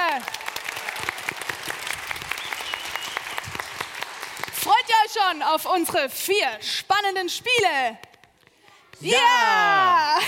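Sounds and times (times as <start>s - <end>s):
audience applause: 0.0s - 4.6s
speech: 5.3s - 8.0s, 9.0s - 10.2s.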